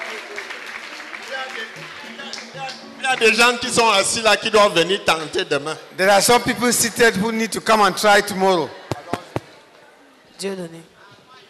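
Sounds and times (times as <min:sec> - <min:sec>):
audience clapping: 0:00.0 - 0:04.6
speech: 0:01.5 - 0:08.8, 0:10.4 - 0:10.9.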